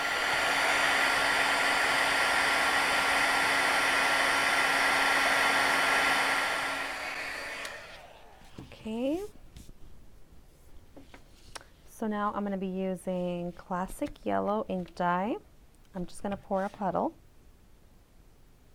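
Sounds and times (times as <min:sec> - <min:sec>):
heat tool blowing to heat set ink: 0:00.0 - 0:09.4
speech: 0:12.0 - 0:17.2.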